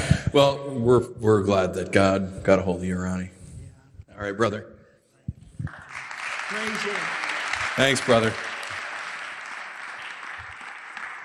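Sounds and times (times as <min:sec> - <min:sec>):
speech: 0:00.4 - 0:03.4, 0:04.2 - 0:04.7, 0:06.5 - 0:07.2, 0:07.8 - 0:08.5
faint audience applause: 0:05.7 - 0:11.2.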